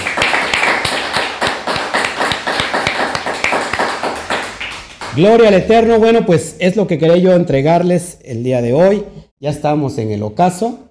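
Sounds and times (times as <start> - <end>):
audience applause: 0.0 - 5.2
speech: 5.2 - 10.8.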